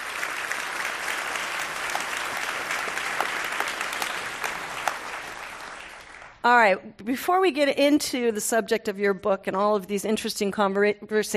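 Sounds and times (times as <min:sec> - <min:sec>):
audience applause as Garry Kasparov is welcomed on stage: 0:00.0 - 0:06.4
speech: 0:06.4 - 0:11.3.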